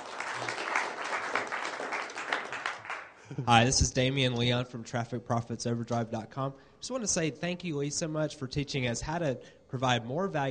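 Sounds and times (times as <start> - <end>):
audience applause: 0.0 - 3.2
speech: 3.3 - 10.4.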